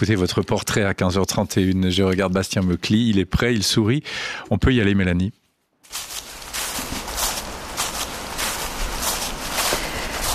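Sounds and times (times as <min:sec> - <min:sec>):
speech: 0:00.0 - 0:06.2
footsteps crunching on dry dead leaves: 0:05.8 - 0:10.3.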